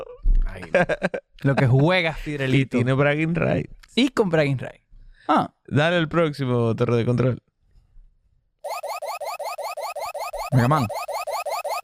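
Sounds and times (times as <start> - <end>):
speech: 0.7 - 7.5, 10.5 - 11.0
electronic alarm chirping: 8.6 - 11.8.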